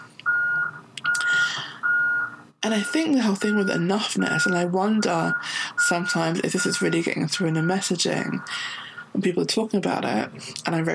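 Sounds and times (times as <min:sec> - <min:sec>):
lorry sounding a high electronic beeping tone: 0:00.3 - 0:08.5
speech: 0:02.6 - 0:10.9.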